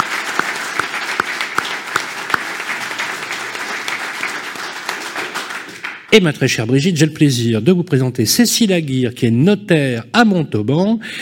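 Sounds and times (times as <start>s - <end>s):
audience applause: 0.0s - 6.1s
speech: 6.1s - 11.1s.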